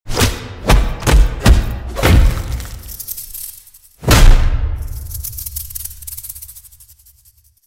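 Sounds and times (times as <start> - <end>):
punches: 0.1 - 2.8, 4.0 - 4.8.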